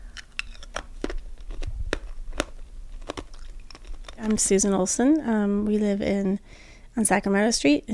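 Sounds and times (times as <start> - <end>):
ice being chewed: 0.0 - 6.0
speech: 4.2 - 7.9.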